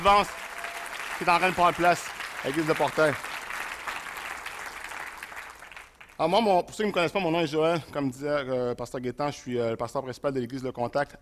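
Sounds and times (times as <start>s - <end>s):
speech: 0.0s - 0.5s, 1.2s - 3.3s, 6.2s - 11.1s
audience applause: 0.0s - 6.2s.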